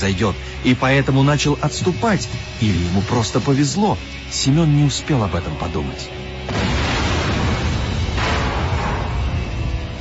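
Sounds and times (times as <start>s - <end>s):
speech: 0.0s - 6.6s
deafening explosion: 6.5s - 9.7s.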